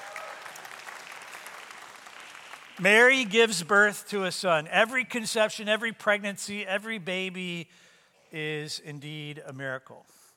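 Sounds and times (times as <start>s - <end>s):
audience clapping: 0.0s - 3.5s
speech: 2.8s - 10.2s.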